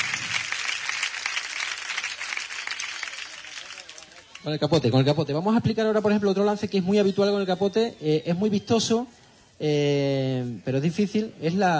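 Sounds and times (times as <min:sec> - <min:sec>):
applause: 0:00.0 - 0:04.6
speech: 0:04.4 - 0:11.7.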